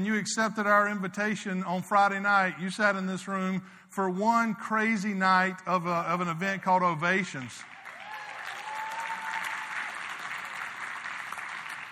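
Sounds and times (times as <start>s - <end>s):
speech: 0.0s - 7.7s
audience clapping: 7.6s - 11.9s.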